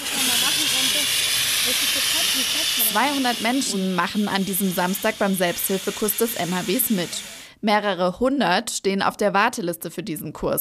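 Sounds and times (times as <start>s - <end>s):
water-filled fire extinguisher spraying: 0.0s - 7.5s
speech: 2.9s - 10.6s.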